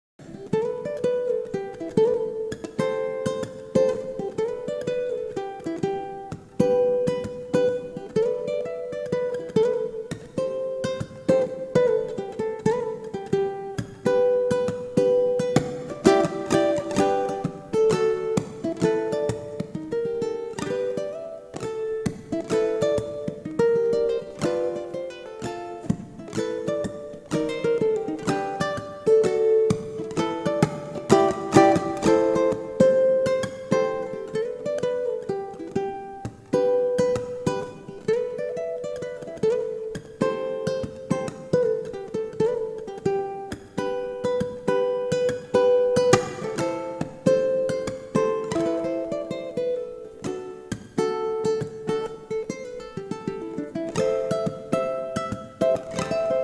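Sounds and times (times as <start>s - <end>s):
solo ukulele: 0.2s - 56.4s.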